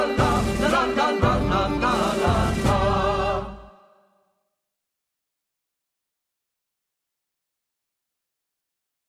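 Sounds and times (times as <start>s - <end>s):
children's song about clapping hands: 0.0s - 4.2s.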